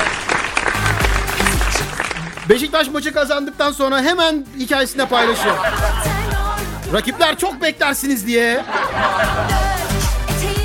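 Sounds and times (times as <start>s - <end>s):
crowd clapping: 0.0s - 3.1s
speech: 2.5s - 6.1s, 6.9s - 9.9s
laughter: 5.0s - 10.0s.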